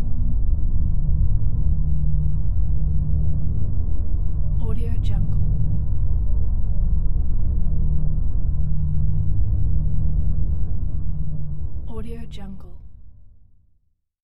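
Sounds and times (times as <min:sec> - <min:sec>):
drone ambience: 0:00.0 - 0:12.6.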